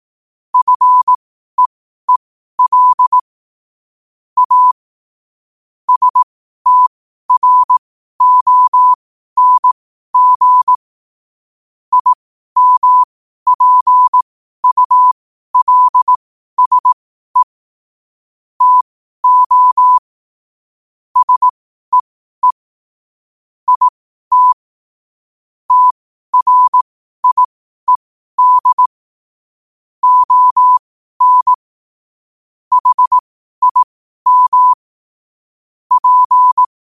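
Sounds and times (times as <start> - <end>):
morse code at 5 wpm: 0.6 - 3.2, 4.4 - 4.8, 5.9 - 10.8, 11.9 - 17.5, 18.6 - 20.1, 21.2 - 22.6, 23.7 - 24.6, 25.7 - 29.0, 30.0 - 31.6, 32.7 - 34.8, 35.9 - 36.7.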